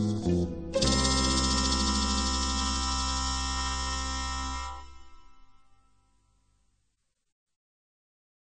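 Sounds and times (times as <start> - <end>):
hold music: 0.0 - 6.0.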